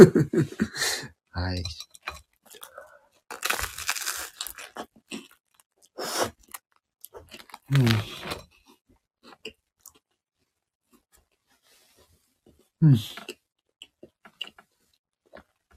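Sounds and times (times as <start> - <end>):
speech: 0.0 - 1.9, 7.7 - 8.2, 12.8 - 13.3
person chewing breakfast: 2.0 - 10.2.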